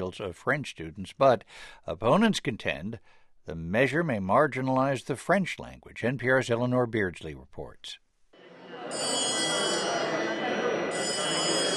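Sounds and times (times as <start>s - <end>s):
speech: 0.0s - 8.0s, 8.9s - 9.4s
bells calling parliament members to order in the National Assembly: 8.5s - 11.7s.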